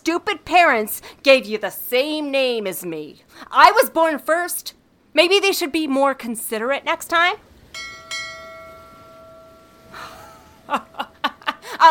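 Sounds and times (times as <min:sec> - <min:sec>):
speech: 0:00.1 - 0:07.9, 0:10.7 - 0:11.0
ship bell ringing: 0:07.7 - 0:11.0.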